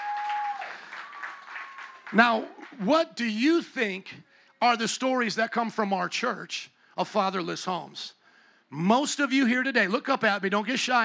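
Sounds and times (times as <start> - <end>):
audience applauding: 0.0 - 2.9
speech: 2.1 - 11.0.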